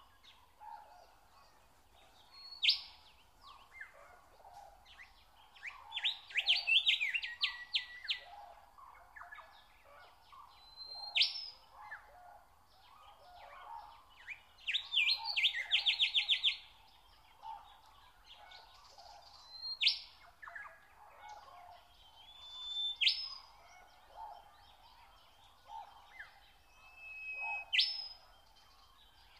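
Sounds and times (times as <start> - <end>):
other birds calling softly: 0.0 - 29.3
nightingale singing: 2.2 - 4.1, 4.9 - 8.4, 10.5 - 12.1, 12.9 - 20.7, 21.8 - 29.3.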